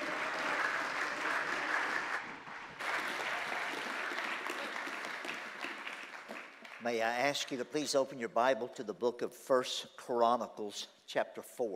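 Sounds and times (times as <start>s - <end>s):
audience applause welcoming a speaker at a church gathering: 0.0s - 6.9s
speech: 6.8s - 11.7s.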